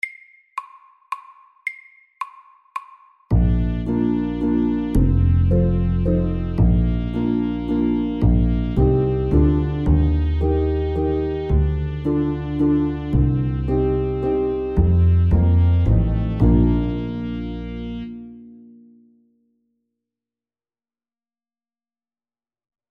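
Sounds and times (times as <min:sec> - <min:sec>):
fast summer waltz: 0:03.3 - 0:18.0.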